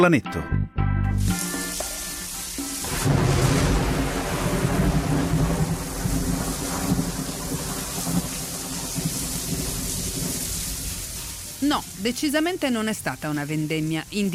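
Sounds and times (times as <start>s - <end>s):
speech: 0.0s - 1.5s, 11.6s - 14.3s
rain: 1.3s - 14.3s
thunder: 2.8s - 11.6s.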